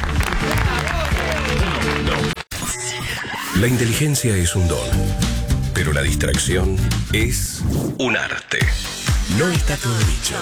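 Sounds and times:
audience applause: 0.0 - 2.4
speech: 3.6 - 10.4.

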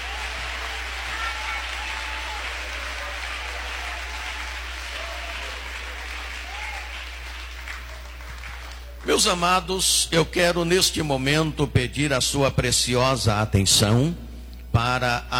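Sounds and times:
audience clapping hands: 0.0 - 9.8
speech: 9.1 - 14.2, 14.8 - 15.3.

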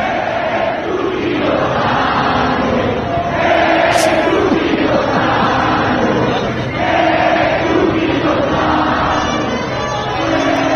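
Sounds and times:
stadium crowd chanting a player's name: 0.0 - 10.7.

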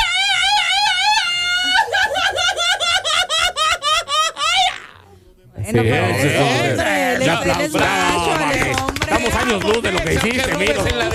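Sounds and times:
people yelling and laughing: 0.0 - 5.0
speech: 5.7 - 11.1.

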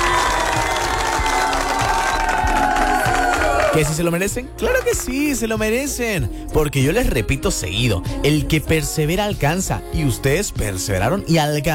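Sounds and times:
applause and cheering: 0.0 - 5.4
speech: 3.8 - 11.7.

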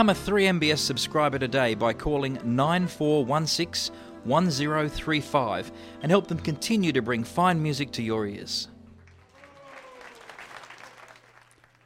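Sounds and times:
speech: 0.0 - 8.7
warm applause: 8.9 - 11.8.

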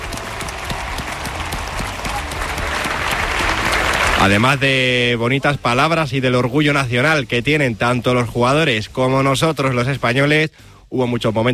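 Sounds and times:
audience applause: 0.0 - 5.0
speech: 4.2 - 11.5.

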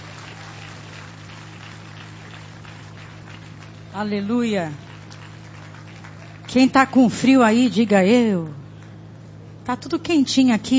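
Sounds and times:
audience applause: 0.0 - 4.0, 4.6 - 7.0
low steady hum: 0.0 - 10.7
speech: 4.0 - 4.8, 6.5 - 8.6, 9.7 - 10.7.

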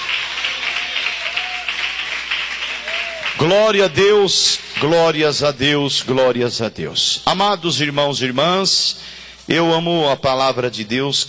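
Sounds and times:
audience clapping: 0.0 - 5.0
speech: 3.4 - 11.2.

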